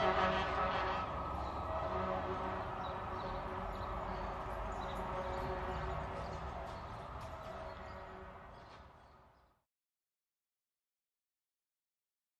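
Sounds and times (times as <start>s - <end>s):
distant fire truck horn honking: 0.0s - 4.2s, 4.8s - 6.4s
distant fire truck siren: 0.0s - 8.9s.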